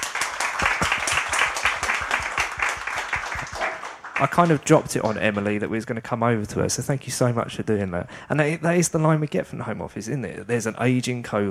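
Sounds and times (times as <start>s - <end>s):
audience applause: 0.0s - 5.4s
speech: 4.2s - 11.4s.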